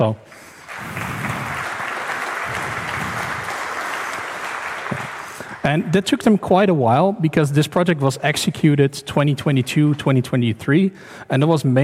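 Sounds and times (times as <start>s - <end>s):
speech: 0.0s - 0.4s, 5.6s - 11.8s
audience applause: 0.0s - 5.7s.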